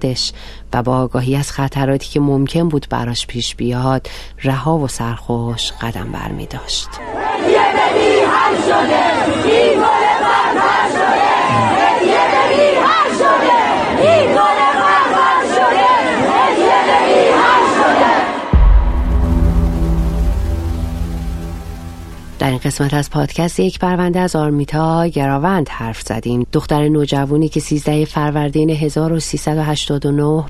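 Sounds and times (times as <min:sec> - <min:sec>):
speech: 0:00.0 - 0:14.6, 0:22.4 - 0:30.4
crowd of mourners chanting and shouting at cemetery: 0:06.8 - 0:22.4
low steady musical drone: 0:18.5 - 0:23.0.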